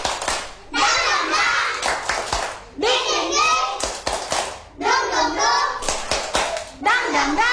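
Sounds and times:
children clapping in a steady rhythm: 0.0 - 6.8
children chanting together in high voices: 0.7 - 4.0, 4.8 - 7.5.

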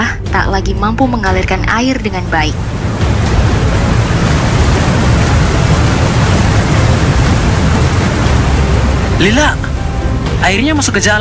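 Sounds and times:
speech: 0.4 - 2.9, 9.2 - 9.7, 10.4 - 11.1
heavy rain pouring down: 1.8 - 11.1.

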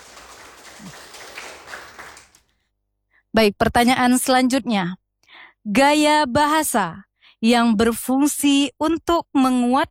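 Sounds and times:
audience applause for a quiz team in a school-style quiz competition: 0.0 - 2.4
speech: 3.4 - 5.0, 5.6 - 9.8.

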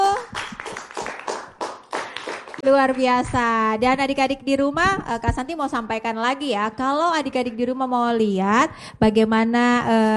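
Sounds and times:
children clapping in a studio during a kids' program: 0.0 - 2.7
speech: 2.6 - 10.1.

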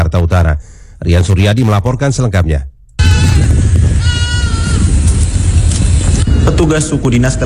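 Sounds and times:
speech: 0.1 - 2.7, 6.5 - 7.4
goats bleating while foraging on garbage piles: 3.0 - 4.9
loud constant low rumbling noise: 3.0 - 7.4.

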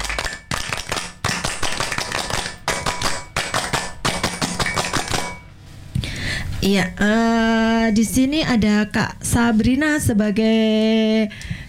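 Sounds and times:
scout clapping: 0.0 - 5.4
speech: 6.6 - 11.6.

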